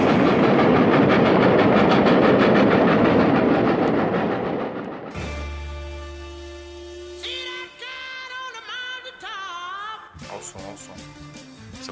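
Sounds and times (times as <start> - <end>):
low hum: 0.0 - 7.4
train running on rails: 0.0 - 8.2.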